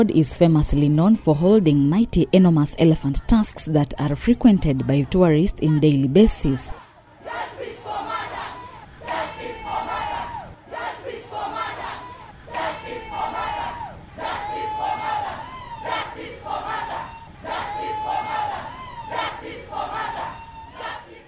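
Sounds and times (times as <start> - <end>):
speech: 0.0 - 7.5
crowd chanting at street protest: 0.0 - 21.2.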